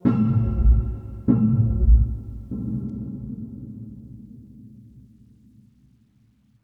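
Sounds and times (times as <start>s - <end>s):
mysterious string music: 0.0s - 3.6s.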